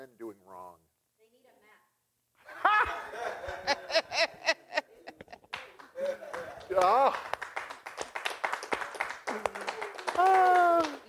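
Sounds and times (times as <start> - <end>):
laughter: 2.4 - 7.2, 9.2 - 11.0
single audience member clapping: 5.1 - 11.0
speech: 6.8 - 7.3.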